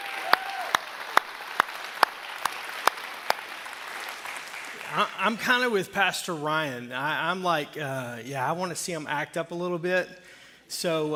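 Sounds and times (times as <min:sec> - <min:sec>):
people clapping for the kids at a church service: 0:00.0 - 0:05.8
speech: 0:04.9 - 0:11.1.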